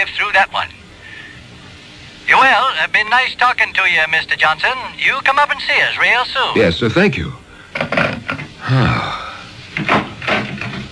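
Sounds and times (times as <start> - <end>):
speech: 0.0 - 0.8, 2.3 - 8.0, 8.7 - 9.2
back door opening and closing: 7.8 - 8.5, 9.8 - 10.9.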